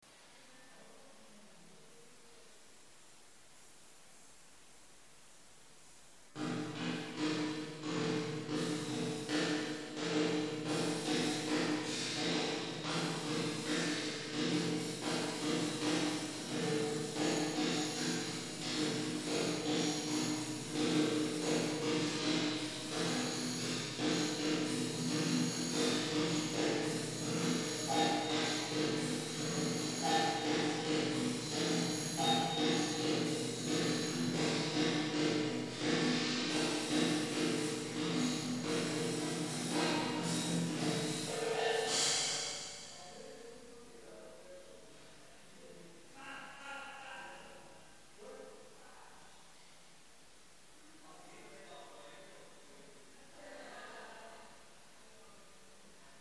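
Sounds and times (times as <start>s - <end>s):
African marketplace rhythmic percussion: 6.3s - 43.4s.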